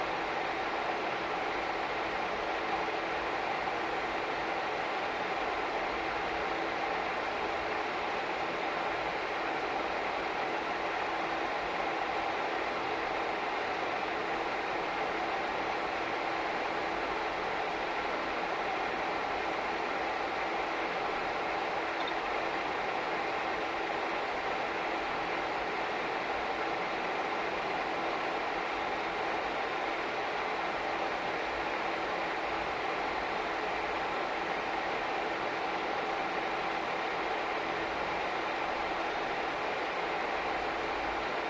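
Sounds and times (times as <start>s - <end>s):
computer fan noise: 0.0s - 41.4s
computer turning on: 22.0s - 22.4s.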